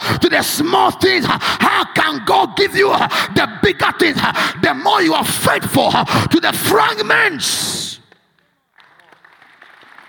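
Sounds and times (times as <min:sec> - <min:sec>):
speech: 0:00.1 - 0:07.8
audience clapping: 0:08.1 - 0:10.0.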